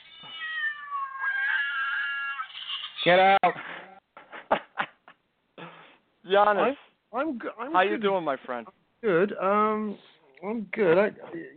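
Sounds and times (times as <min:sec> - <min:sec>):
cats meowing: 0:00.0 - 0:03.0
speech: 0:03.0 - 0:03.6, 0:06.3 - 0:11.5.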